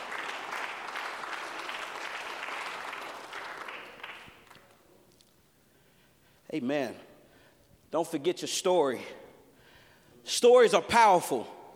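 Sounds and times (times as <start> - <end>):
audience hand clapping: 0.0 - 4.8
speech: 6.5 - 7.1, 7.9 - 9.2, 10.2 - 11.6.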